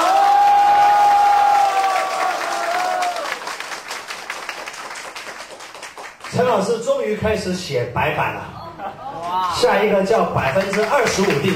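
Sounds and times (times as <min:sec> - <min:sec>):
audience applause: 0:00.0 - 0:06.6, 0:10.4 - 0:11.5
speech: 0:06.5 - 0:08.6, 0:09.3 - 0:11.5.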